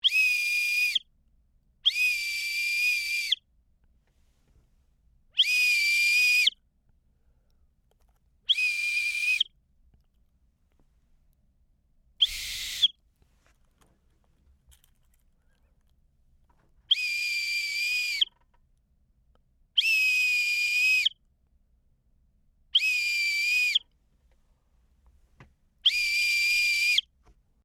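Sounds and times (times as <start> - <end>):
whistle: 0.0 - 1.1, 1.8 - 3.5, 5.4 - 6.6, 8.5 - 9.6, 12.2 - 13.0, 16.9 - 18.4, 19.8 - 21.2, 22.8 - 23.9, 25.8 - 27.1.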